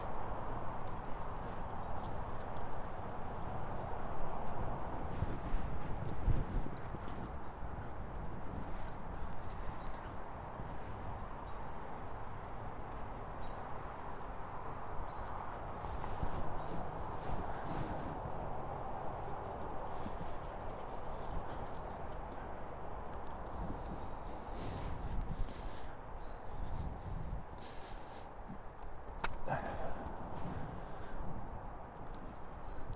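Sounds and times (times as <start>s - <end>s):
wind and road noise on a bike ride: 0.0s - 32.9s.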